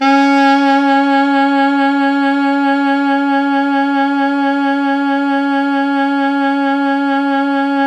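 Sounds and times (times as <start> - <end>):
pop brass note: 0.0 - 7.8.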